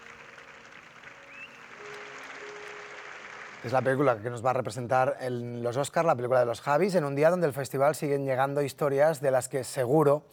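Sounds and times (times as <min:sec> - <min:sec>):
large audience ovation applause: 0:00.0 - 0:04.4
speech: 0:03.6 - 0:10.3.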